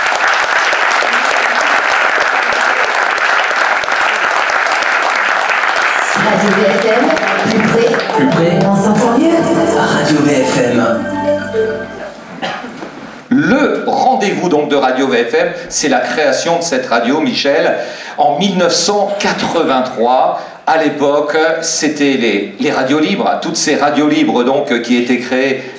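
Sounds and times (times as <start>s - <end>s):
studio audience applause: 0.0s - 10.2s
speech: 6.3s - 12.0s, 13.4s - 25.7s.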